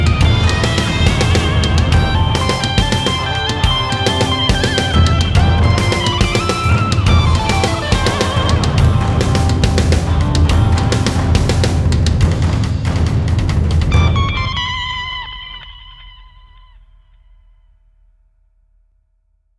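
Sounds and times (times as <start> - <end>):
music expressing anger: 0.0 - 15.5.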